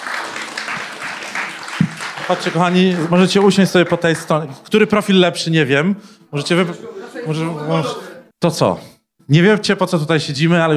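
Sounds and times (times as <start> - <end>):
audience applause: 0.0 - 4.6
speech: 2.3 - 10.7
laughter: 6.5 - 8.2.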